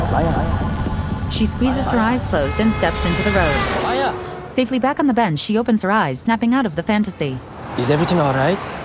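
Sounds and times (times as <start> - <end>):
speech: 0.2 - 0.6, 1.4 - 8.8
traffic whizzing past a bus stop outside a school: 1.5 - 5.0, 6.9 - 8.8.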